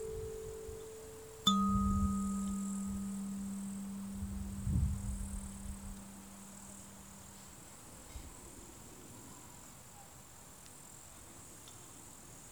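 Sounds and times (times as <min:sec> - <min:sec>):
15-tone kalimbas in G minor: 0:00.0 - 0:07.4.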